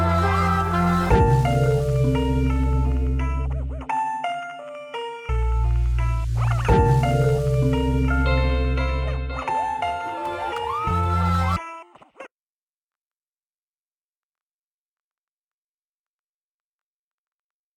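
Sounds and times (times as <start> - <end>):
funk music in C: 0.0 - 11.6.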